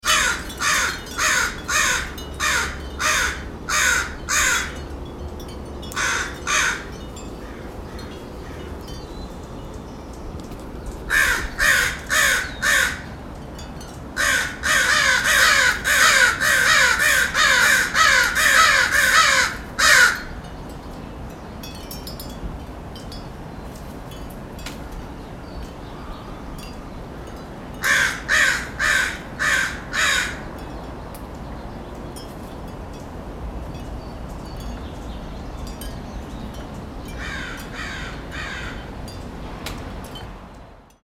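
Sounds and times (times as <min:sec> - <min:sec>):
crows in Portland: 0:00.0 - 0:04.8, 0:06.0 - 0:08.7, 0:11.1 - 0:13.2, 0:14.2 - 0:20.4, 0:27.8 - 0:30.5, 0:37.2 - 0:38.9
wind chimes in Portland: 0:00.0 - 0:15.8, 0:17.9 - 0:28.3, 0:30.4 - 0:41.0.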